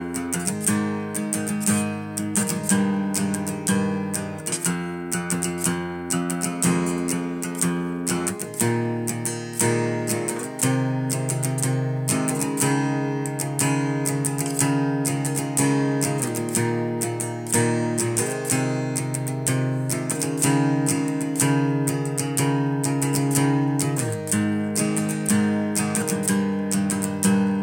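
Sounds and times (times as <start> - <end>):
simple guitar playing: 0.0 - 27.6.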